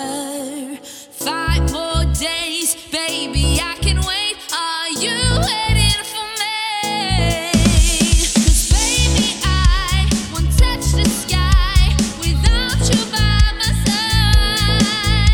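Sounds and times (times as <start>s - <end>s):
slow funk music: 1.2s - 2.4s, 3.1s - 15.3s.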